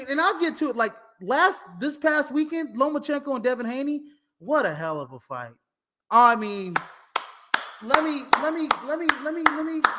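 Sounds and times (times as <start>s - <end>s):
speech: 0.0s - 7.0s, 7.8s - 9.9s
podcast host clapping hands in praise of a boxing fight: 6.6s - 9.9s.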